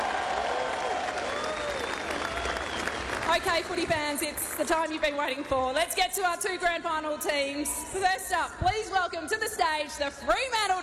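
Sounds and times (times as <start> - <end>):
faint whistles and cheers: 0.0 - 3.4
crowd applauding: 0.0 - 6.1
speech: 3.4 - 10.8.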